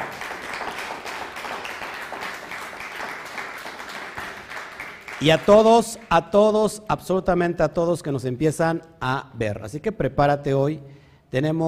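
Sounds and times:
crowd applauding: 0.0 - 5.9
speech: 5.2 - 11.6.

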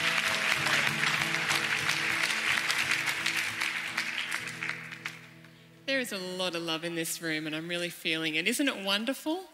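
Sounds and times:
keyboard music: 0.0 - 5.3
audience applause welcoming speaker: 0.0 - 5.4
speech: 5.9 - 9.5.

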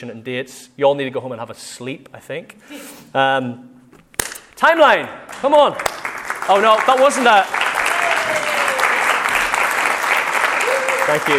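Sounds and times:
speech: 0.0 - 3.7, 4.6 - 7.6, 11.1 - 11.3
audience clapping: 5.3 - 11.3.

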